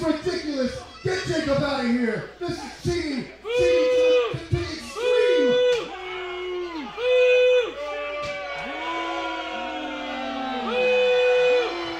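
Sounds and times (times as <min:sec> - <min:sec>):
speech: 0:00.1 - 0:03.0
crowd booing: 0:03.4 - 0:11.9.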